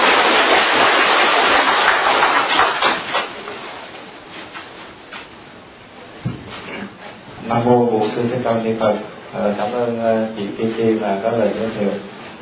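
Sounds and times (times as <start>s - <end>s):
audience applause: 0.0s - 3.4s
speech: 7.6s - 12.1s.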